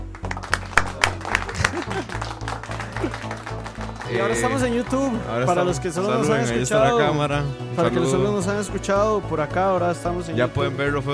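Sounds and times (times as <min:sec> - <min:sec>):
audience applause: 0:00.0 - 0:06.0
laughter: 0:00.4 - 0:08.6
speech: 0:04.1 - 0:11.1.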